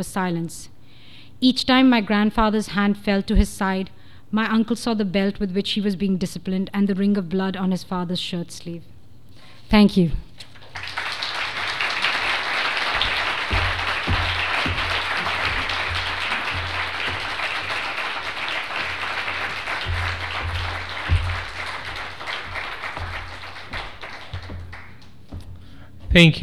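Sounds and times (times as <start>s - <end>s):
speech: 0.0s - 0.8s, 1.4s - 8.9s, 9.7s - 10.3s, 26.2s - 26.4s
audience applause: 10.4s - 25.5s.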